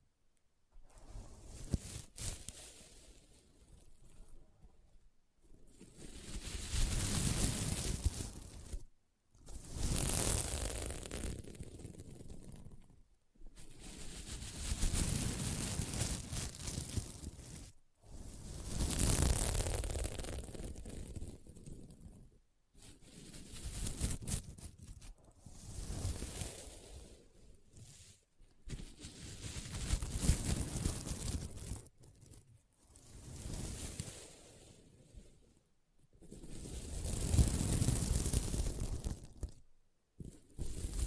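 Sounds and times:
scratching on a sequin mermaid pillow: 1.4s - 3.2s, 5.8s - 13.0s, 13.6s - 27.0s, 27.7s - 34.3s, 36.2s - 41.0s.

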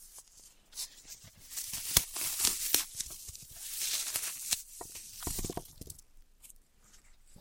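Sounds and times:
floral foam crunchy crumbling and scraping: 1.3s - 6.0s.

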